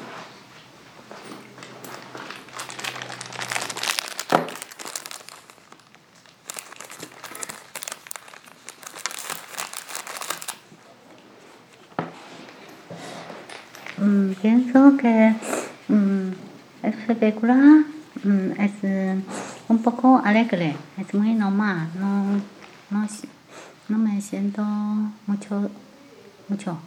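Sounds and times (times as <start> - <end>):
paper crumpled and handled: 1.6 - 10.8
speech: 14.1 - 23.3, 23.9 - 25.9, 26.5 - 26.8.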